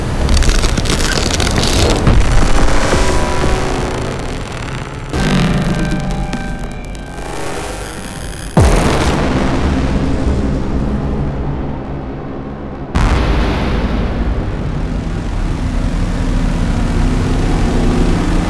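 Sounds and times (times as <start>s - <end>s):
dark cinematic soundscape: 0.2s - 18.4s.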